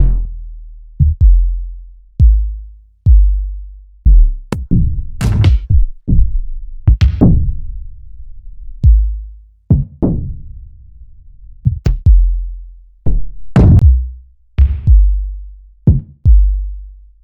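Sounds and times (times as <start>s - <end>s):
kick drums: 1.0s - 1.5s, 2.2s - 3.4s, 4.1s - 7.5s, 8.8s - 10.3s, 11.6s - 12.4s, 13.1s - 15.2s, 15.9s - 16.6s.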